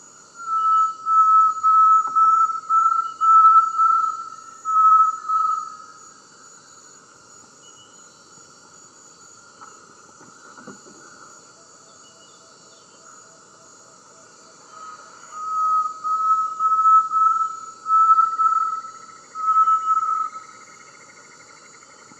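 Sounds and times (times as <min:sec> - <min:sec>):
great tinamou singing low whistles in the eastern lowlands of South America: 0:00.4 - 0:05.8, 0:14.8 - 0:20.4.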